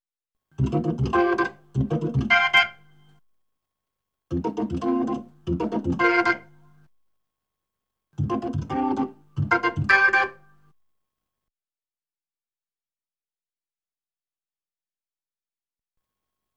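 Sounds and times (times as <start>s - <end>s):
Hammond B3 organ: 0.6s - 2.9s, 4.3s - 6.8s, 8.2s - 10.4s.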